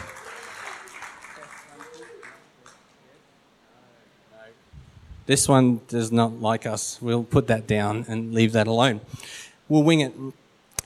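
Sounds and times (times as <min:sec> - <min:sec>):
group clapping: 0:00.0 - 0:03.2
speech: 0:05.3 - 0:10.8.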